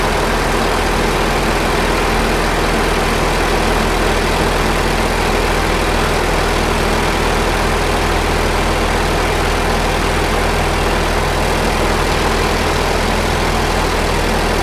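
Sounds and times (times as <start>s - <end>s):
T-28D Trojan aircraft interior noise in flight: 0.0s - 14.6s.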